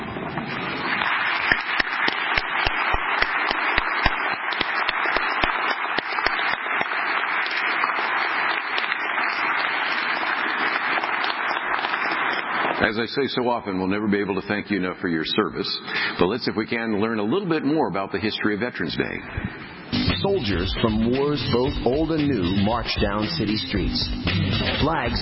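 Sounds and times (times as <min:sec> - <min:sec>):
audience applause for veterans: 0:00.8 - 0:12.8
speech: 0:12.9 - 0:19.6, 0:20.2 - 0:25.2.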